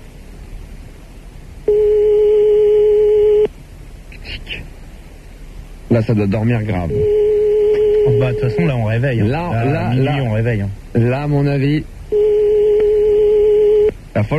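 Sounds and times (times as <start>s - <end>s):
telephone ringing: 1.7s - 3.5s, 6.9s - 8.8s, 12.1s - 13.9s
speech: 6.0s - 7.2s, 8.1s - 12.0s, 14.1s - 14.3s.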